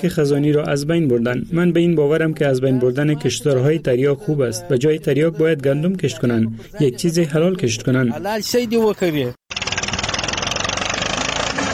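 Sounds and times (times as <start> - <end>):
speech: 0.0 - 9.5
tractor engine running: 9.5 - 11.7.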